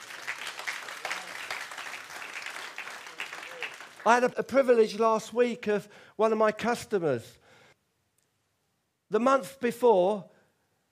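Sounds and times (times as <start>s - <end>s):
audience hand clapping: 0.0s - 4.8s
speech: 4.0s - 7.4s, 9.1s - 10.3s.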